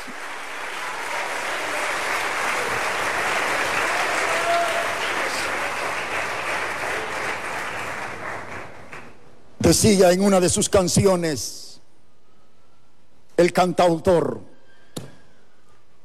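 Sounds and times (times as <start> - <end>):
audience applause: 0.0 - 9.2
speech: 9.7 - 11.6, 13.4 - 14.5.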